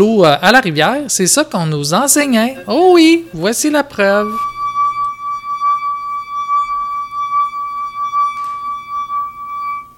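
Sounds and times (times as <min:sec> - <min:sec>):
speech: 0:00.0 - 0:04.5
wet finger rubbing rim of wine glass: 0:02.2 - 0:09.9.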